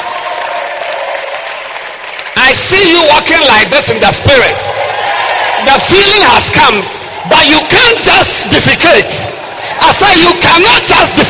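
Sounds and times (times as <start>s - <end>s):
audience applause: 0.0s - 6.2s
speech: 2.5s - 4.9s, 5.6s - 11.2s.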